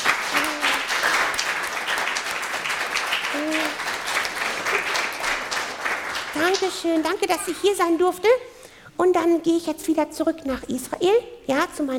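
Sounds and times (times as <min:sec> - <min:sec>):
audience applause: 0:00.0 - 0:07.8
whoops or calls: 0:00.3 - 0:00.9, 0:03.3 - 0:03.8
speech: 0:06.4 - 0:11.9.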